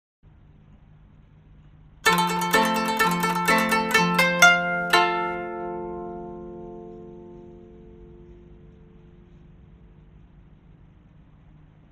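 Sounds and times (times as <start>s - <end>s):
koto: 2.0s - 9.5s.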